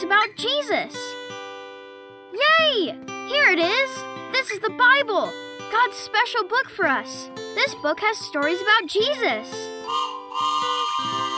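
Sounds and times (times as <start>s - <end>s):
speech: 0.0s - 1.1s, 2.4s - 10.1s
train whistle: 9.8s - 11.3s.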